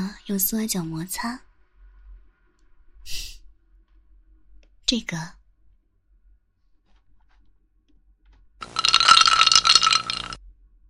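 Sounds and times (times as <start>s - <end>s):
speech: 0.2s - 1.5s, 4.9s - 5.4s
ice cubes rattling and clinking: 8.6s - 10.4s.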